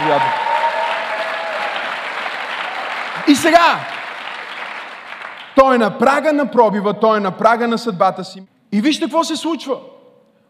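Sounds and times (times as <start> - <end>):
audience applause: 0.0 - 5.6
speech: 3.2 - 4.0, 5.6 - 9.9.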